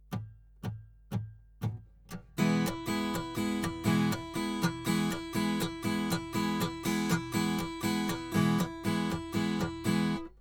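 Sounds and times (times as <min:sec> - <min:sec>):
strumming at 120 bpm: 0:02.1 - 0:10.4.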